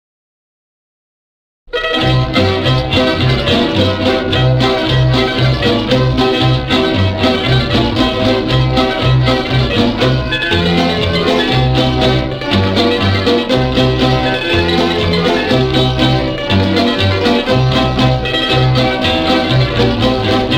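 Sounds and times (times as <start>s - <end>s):
instrumental kolo folk dance music: 1.7s - 20.5s.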